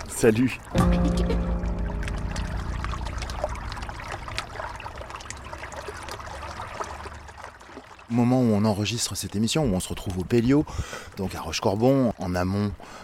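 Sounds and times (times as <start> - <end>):
Loire river water flowing along the bank at Rochecorbon on a frosty winter day: 0.0 - 13.0
speech: 0.2 - 1.5, 8.1 - 13.0
low hum: 0.8 - 6.1.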